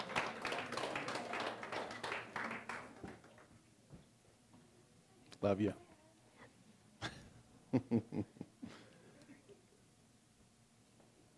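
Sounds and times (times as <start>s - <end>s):
audience clapping: 0.0s - 3.6s
speech: 5.4s - 5.8s, 7.7s - 8.4s.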